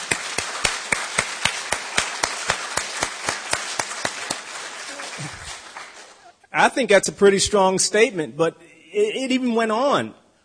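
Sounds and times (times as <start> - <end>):
small group clapping: 0.0 - 6.4
speech: 6.6 - 10.2.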